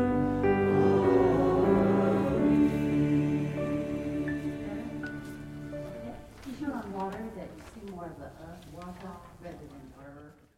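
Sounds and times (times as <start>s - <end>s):
alto voice: 0.0s - 6.3s.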